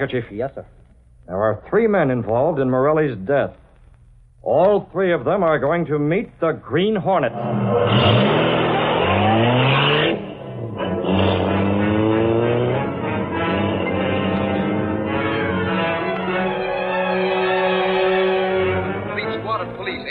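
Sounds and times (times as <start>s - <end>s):
speech: 0.0s - 3.6s, 4.4s - 8.5s
car engine revving and driving off: 7.2s - 20.0s.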